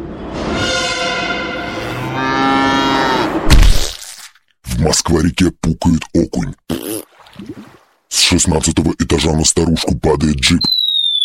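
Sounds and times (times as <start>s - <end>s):
subway train hitting a cow: 0.0s - 1.5s
cow mooing: 1.6s - 3.4s
speech: 5.0s - 10.7s.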